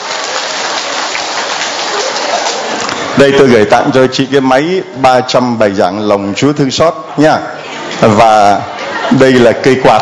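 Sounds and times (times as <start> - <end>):
round of applause: 0.0 - 3.2
speech: 3.2 - 9.9
laughter: 7.4 - 9.9.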